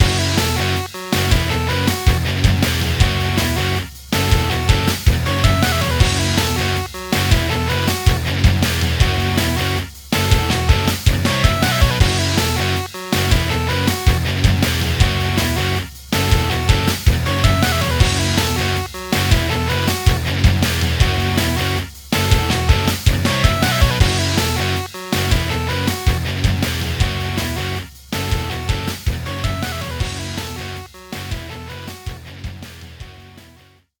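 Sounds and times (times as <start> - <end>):
3D music: 0.0 - 32.2.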